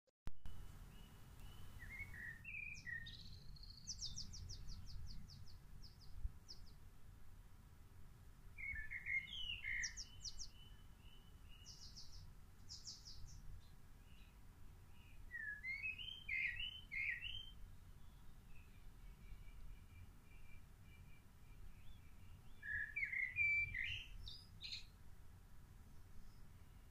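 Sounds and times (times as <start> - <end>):
birds chirping with high thin notes: 0.9 - 6.8, 8.6 - 25.0.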